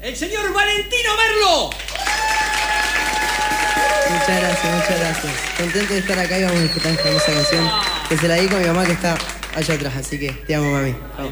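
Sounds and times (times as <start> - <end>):
speech: 0.0 - 2.2, 3.8 - 11.3
loud applause: 1.7 - 10.5.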